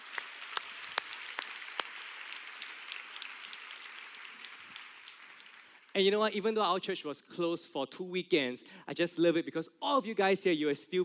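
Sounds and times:
audience applauding: 0.0 - 5.9
speech: 6.0 - 11.0.

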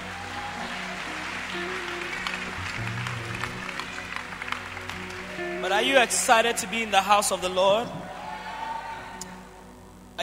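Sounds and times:
church congregation clapping weakly: 0.1 - 6.3
sustained musical tones: 1.0 - 7.9
speech: 5.6 - 8.0.

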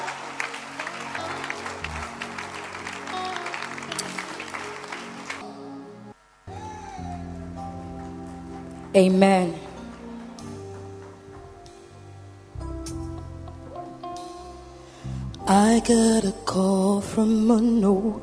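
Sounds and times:
audience clapping: 0.0 - 5.5, 7.0 - 12.2
sustained low musical tones: 0.0 - 18.2
speech: 9.0 - 9.6, 15.6 - 18.2.

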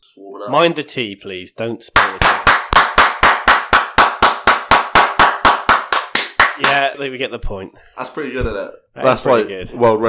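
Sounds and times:
speech: 0.2 - 2.4, 6.6 - 10.0
long loud clap: 2.0 - 6.9.

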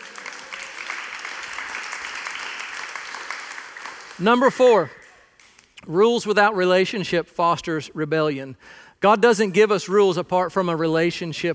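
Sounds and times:
audience applause: 0.0 - 5.2
speech: 4.2 - 5.0, 5.9 - 11.5.

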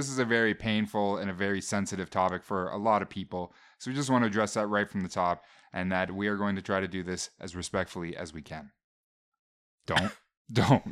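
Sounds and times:
speech: 0.0 - 8.8, 9.8 - 10.8
throat clearing: 9.9 - 10.8.

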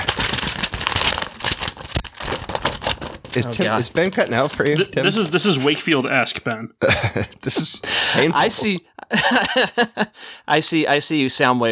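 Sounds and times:
print newspaper pages rustling and crinkling: 0.0 - 5.9
speech: 3.4 - 11.6
laughter: 4.4 - 10.2.

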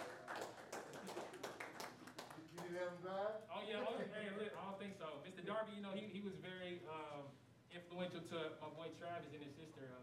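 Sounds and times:
hand clapping: 0.0 - 2.7
speech: 2.8 - 10.0.

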